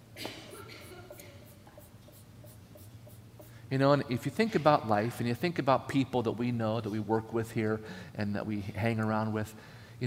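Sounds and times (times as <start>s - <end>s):
pen scratching on paper drawing a ladder: 0.8s - 3.6s
speech: 3.7s - 10.0s.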